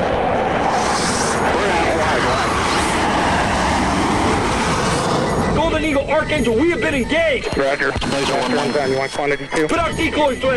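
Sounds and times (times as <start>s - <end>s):
missile streaking past: 0.0s - 5.6s
fighter jet engine roaring while banking: 0.0s - 9.5s
speech: 6.2s - 10.5s.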